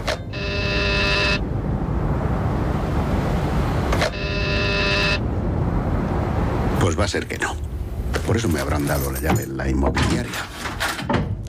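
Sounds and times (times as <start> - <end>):
traffic noise: 0.0 - 11.0
electronic doorbell buzzes at a building entrance on Calle Princesa: 0.3 - 1.4, 4.1 - 5.2
speech: 7.0 - 7.7, 8.3 - 10.6.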